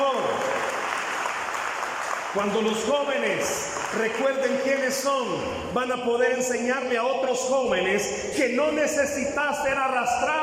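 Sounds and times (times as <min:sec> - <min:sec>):
audience applause: 0:00.0 - 0:05.1
speech: 0:02.3 - 0:10.4.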